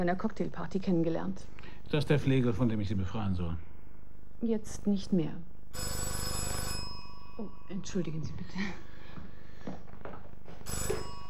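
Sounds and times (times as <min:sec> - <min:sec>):
speech: 0:00.0 - 0:03.7, 0:04.4 - 0:06.1, 0:07.4 - 0:08.9, 0:09.6 - 0:11.1
steady low hum: 0:00.0 - 0:11.2
telephone ringing with a bright metallic trill: 0:05.7 - 0:08.9, 0:10.5 - 0:11.2.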